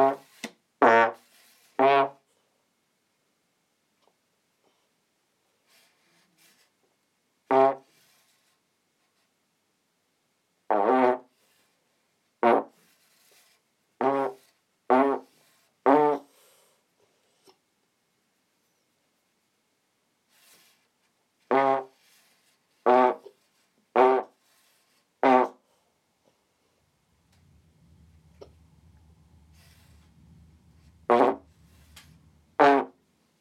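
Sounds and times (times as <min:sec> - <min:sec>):
trombone practice: 0:00.8 - 0:02.2, 0:07.5 - 0:07.9, 0:10.7 - 0:11.3, 0:12.4 - 0:12.9, 0:14.0 - 0:16.3, 0:21.5 - 0:22.0, 0:22.8 - 0:23.3, 0:23.9 - 0:24.4, 0:25.2 - 0:25.6, 0:26.9 - 0:33.2.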